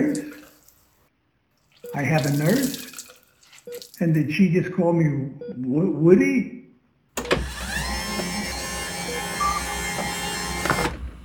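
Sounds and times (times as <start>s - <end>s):
speech: 0.0s - 0.4s, 1.9s - 2.9s, 3.7s - 6.6s
motorized hospital bed electric motor whine: 7.4s - 11.0s.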